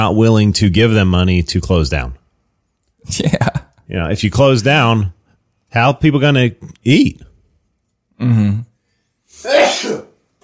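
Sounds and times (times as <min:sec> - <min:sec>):
speech: 0:00.0 - 0:02.2, 0:03.0 - 0:07.3, 0:08.2 - 0:08.7, 0:09.3 - 0:10.1
person sneezing: 0:09.3 - 0:10.2.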